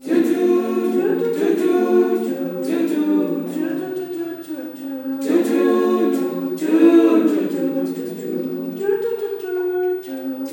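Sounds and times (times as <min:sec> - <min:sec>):
female choir singing: 0:00.0 - 0:10.5.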